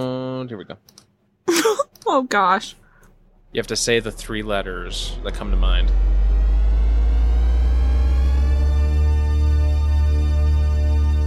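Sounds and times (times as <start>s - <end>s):
speech: 0.0s - 2.8s, 3.6s - 6.1s
deep rumbling bass: 2.6s - 11.2s
synthesized tones settling into one huge chord: 3.4s - 11.2s.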